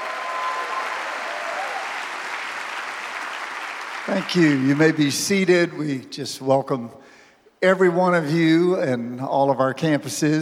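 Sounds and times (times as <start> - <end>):
audience hand clapping: 0.0 - 5.3
speech: 4.1 - 10.4.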